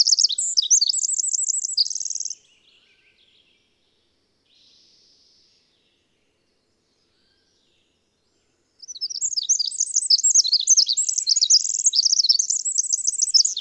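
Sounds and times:
twittering bird song with short trills: 0:00.0 - 0:03.0, 0:08.8 - 0:13.5.

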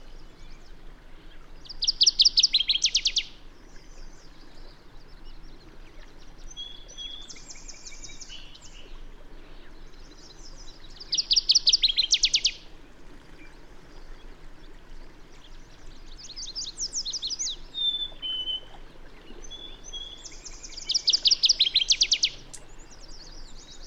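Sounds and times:
bird song with fast trill of high notes: 0:01.3 - 0:09.0, 0:09.6 - 0:12.6, 0:15.8 - 0:18.8, 0:19.4 - 0:23.8.

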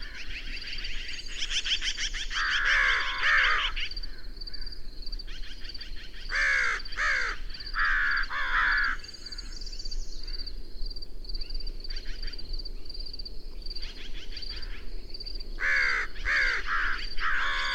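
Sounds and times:
bird cawing: 0:01.3 - 0:04.8, 0:06.2 - 0:09.6, 0:15.6 - 0:17.7.

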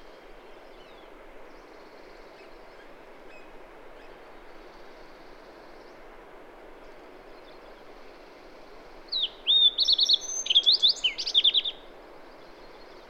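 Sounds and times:
bird song with whistled slurs and trilled phrases: 0:00.3 - 0:06.1, 0:09.1 - 0:13.0.

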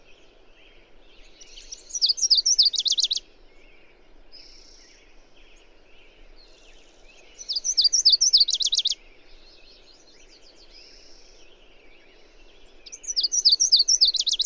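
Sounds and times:
bird song of high chirps ending in a fast trill: 0:01.4 - 0:03.2, 0:07.4 - 0:09.0, 0:12.8 - 0:14.4.

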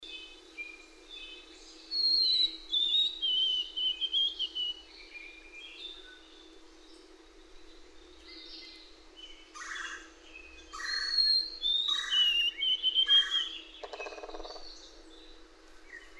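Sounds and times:
bird singing whistled notes: 0:00.6 - 0:06.4, 0:10.4 - 0:14.8.

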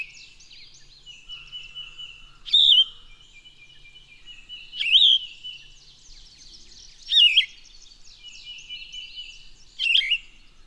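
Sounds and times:
bird song whistled phrases: 0:02.5 - 0:10.4.

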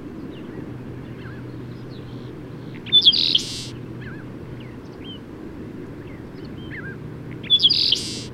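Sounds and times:
bird chirping: 0:00.3 - 0:05.2, 0:06.0 - 0:08.3.

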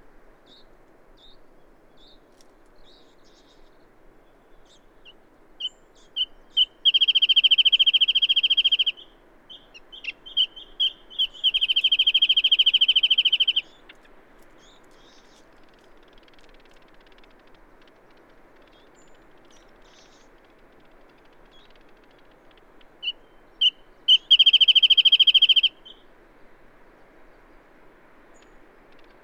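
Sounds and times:
bird singing spaced clear notes and fast steady trill: 0:02.8 - 0:26.0.

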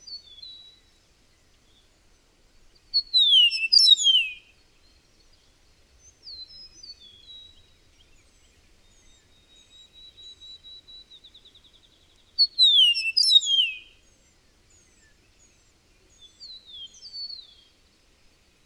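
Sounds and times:
bird song with whistles and trill: 0:00.0 - 0:01.9, 0:02.8 - 0:17.8.

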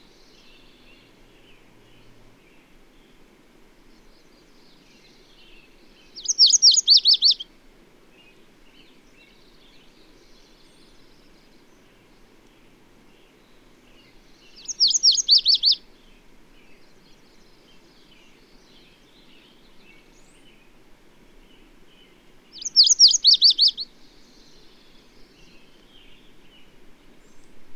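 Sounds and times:
bird song of rapid high sweeping notes: 0:06.2 - 0:07.4, 0:14.5 - 0:15.8, 0:22.5 - 0:23.9.

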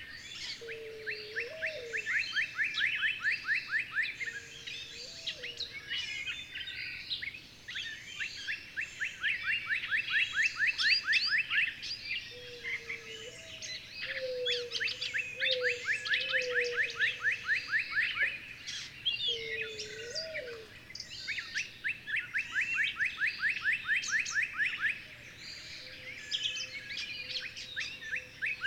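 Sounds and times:
birds singing in a chorus: 0:00.0 - 0:28.6.

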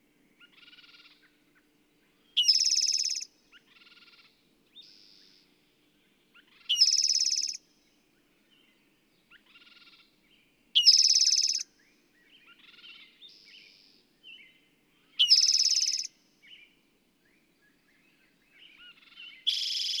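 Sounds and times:
bird rapid even trill of high notes: 0:02.4 - 0:03.3, 0:06.7 - 0:07.6, 0:10.8 - 0:11.6, 0:15.2 - 0:16.1.

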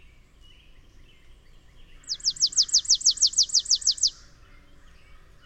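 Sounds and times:
bird singing a rapid run of high descending slurred notes: 0:00.8 - 0:04.3.

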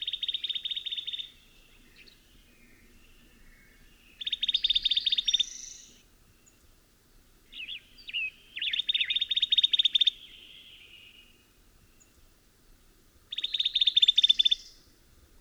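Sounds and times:
bird song with buzzy notes and dry rapid trill: 0:00.0 - 0:06.7, 0:07.5 - 0:12.2, 0:13.3 - 0:14.9.

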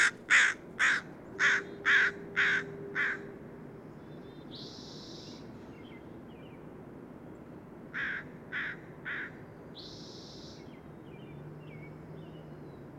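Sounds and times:
bird harsh caws: 0:00.0 - 0:03.3, 0:08.0 - 0:09.4.

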